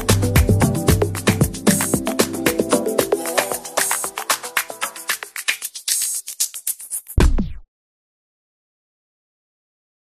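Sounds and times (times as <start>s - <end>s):
afrobeat instrumental worship soundscape: 0.0s - 7.2s.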